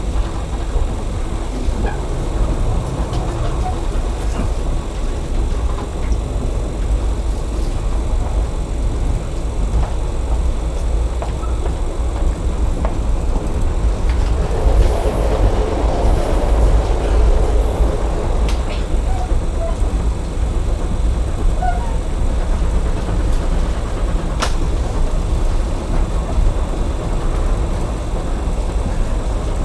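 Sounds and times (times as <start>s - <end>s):
train interior at terminal going and stopping: 0.0s - 29.6s.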